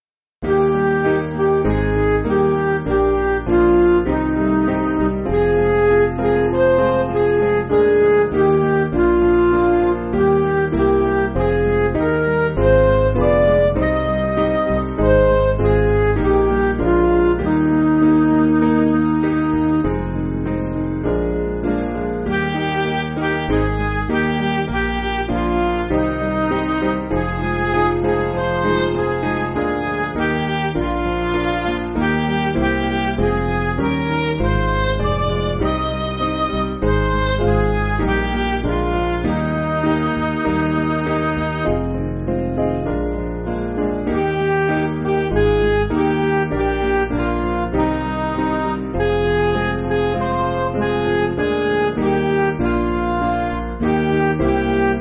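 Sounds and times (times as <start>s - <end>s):
backing music for churches: 0.4s - 54.9s.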